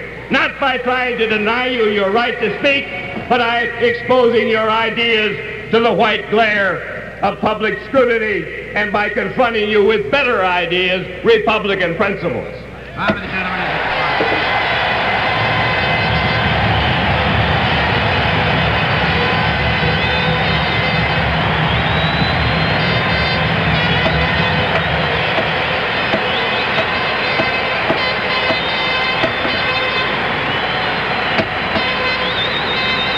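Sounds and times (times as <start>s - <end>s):
speech: 0.3s - 14.0s
convention state delegations applauding: 13.3s - 33.1s.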